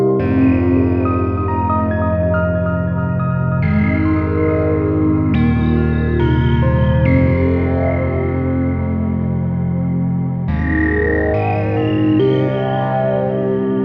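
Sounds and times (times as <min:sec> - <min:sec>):
submachine gun FM synth loop: 0:00.0 - 0:13.8.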